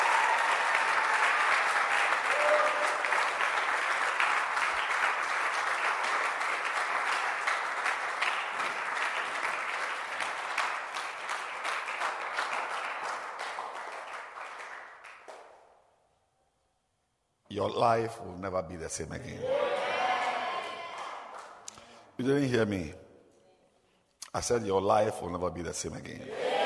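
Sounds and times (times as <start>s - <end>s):
audience clapping hands: 0.0s - 15.9s, 20.0s - 22.0s
speech: 17.6s - 19.8s, 22.2s - 23.0s, 24.4s - 26.5s.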